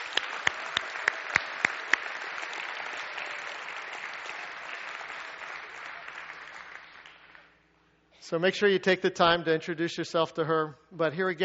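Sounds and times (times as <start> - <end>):
church congregation applauding a new member: 0.0 - 7.6
speech: 8.3 - 11.4.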